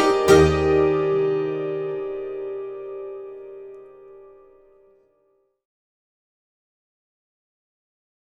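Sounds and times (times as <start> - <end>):
hammered dulcimer Ländler dance tune: 0.0 - 3.6.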